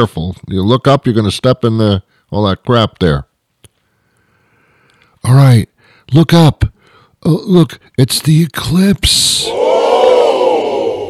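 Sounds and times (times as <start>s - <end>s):
speech: 0.0s - 3.3s, 5.2s - 10.4s
crowd in a field in Rochester, New York cheering at a total solar eclipse: 9.4s - 11.0s.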